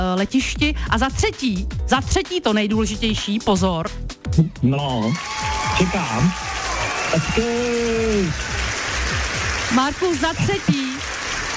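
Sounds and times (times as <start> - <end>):
speech: 0.0 - 6.5, 7.1 - 8.6, 9.7 - 10.9
applause: 5.0 - 11.5.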